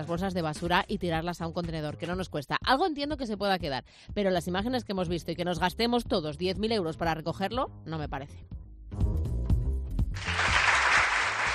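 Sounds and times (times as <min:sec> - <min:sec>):
speech: 0:00.0 - 0:09.0
audience applause: 0:10.2 - 0:11.5.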